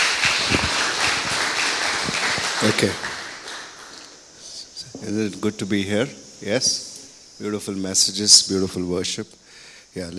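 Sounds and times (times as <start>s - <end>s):
audience applause welcoming a pastor at a church service: 0.0s - 4.3s
speech: 2.6s - 3.1s, 5.0s - 9.4s, 10.0s - 10.1s.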